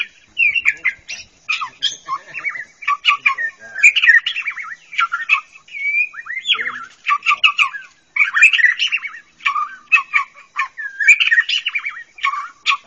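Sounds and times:
bird song of trills, squeaky whistles and scratchy chattering: 0.0s - 12.8s.

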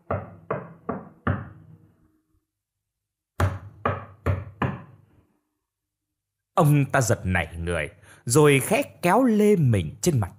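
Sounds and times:
sharp knocks on a door: 0.0s - 1.6s, 3.4s - 5.0s
speech: 6.6s - 10.3s.

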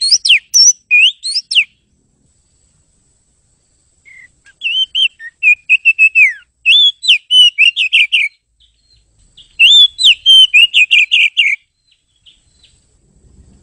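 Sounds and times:
bird whistling bright pure notes: 0.0s - 1.8s, 4.1s - 12.8s.

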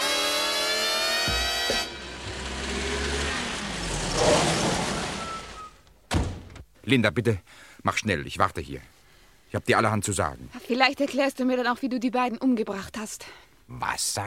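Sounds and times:
car engine starting and driving off: 0.1s - 5.9s
speech: 6.9s - 14.2s.

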